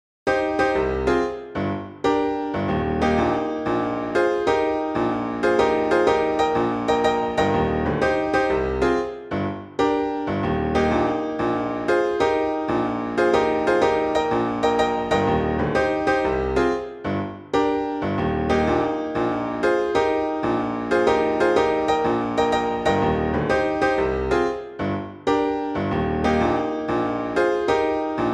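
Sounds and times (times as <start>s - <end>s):
jazz piano miniature: 0.3s - 28.3s.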